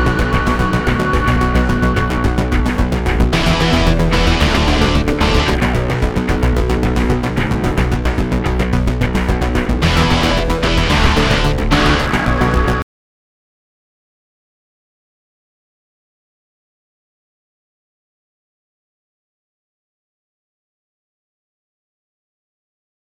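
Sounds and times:
ambient loop: 0.0s - 12.8s.

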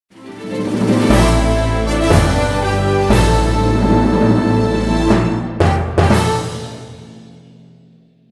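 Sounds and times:
Leitai win sound: 0.2s - 6.9s.

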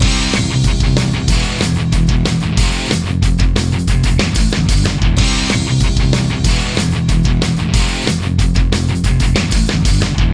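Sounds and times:
short instrumental theme loop: 0.0s - 10.3s.

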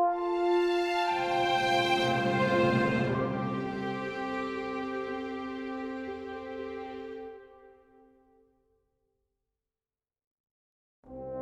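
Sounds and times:
world music: 0.2s - 7.8s.

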